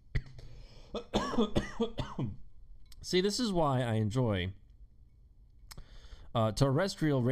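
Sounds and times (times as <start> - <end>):
man coughing on the radio: 0.9 - 2.4
speech: 0.9 - 2.4, 3.0 - 4.6, 6.3 - 7.3.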